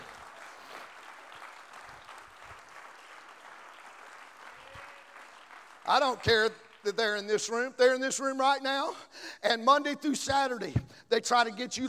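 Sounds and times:
audience clapping hands: 0:00.0 - 0:07.7
speech: 0:05.9 - 0:11.8.

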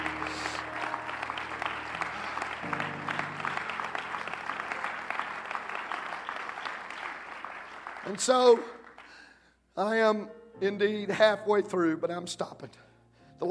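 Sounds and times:
audience clapping hands: 0:00.0 - 0:09.3
speech: 0:08.1 - 0:08.8, 0:09.8 - 0:13.5.

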